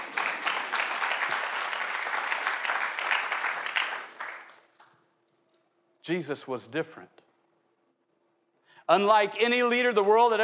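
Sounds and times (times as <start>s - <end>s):
audience applause: 0.0s - 4.8s
speech: 6.1s - 7.2s, 8.9s - 10.4s.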